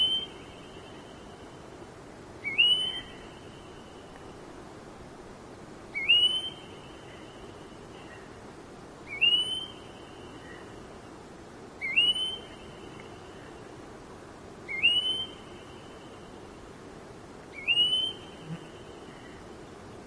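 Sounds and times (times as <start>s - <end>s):
red-browed goldfinch whistling: 0.0s - 0.4s, 2.4s - 3.2s, 6.0s - 6.7s, 9.1s - 9.9s, 11.8s - 12.7s, 14.7s - 15.4s, 17.5s - 18.7s
background hiss: 0.0s - 20.0s.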